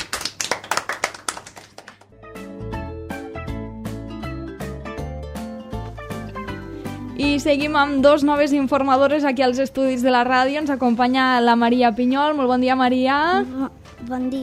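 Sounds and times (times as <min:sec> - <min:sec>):
loud applause: 0:00.0 - 0:02.0
speech: 0:07.2 - 0:14.4.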